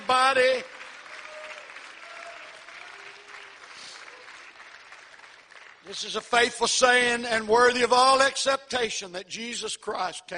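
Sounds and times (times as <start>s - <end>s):
audience clapping in praise: 0.0s - 7.8s
speech: 0.1s - 0.8s, 5.9s - 10.3s.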